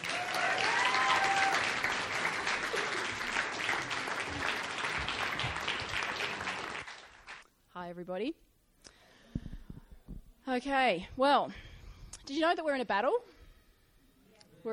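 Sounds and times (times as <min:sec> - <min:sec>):
audience applause welcoming a speaker onto a stage: 0:00.0 - 0:07.4
speech: 0:08.0 - 0:08.5, 0:10.5 - 0:11.6, 0:12.3 - 0:13.2.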